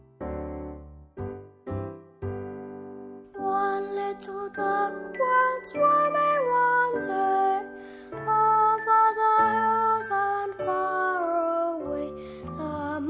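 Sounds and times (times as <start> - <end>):
children's song performance track: 3.4 - 13.0.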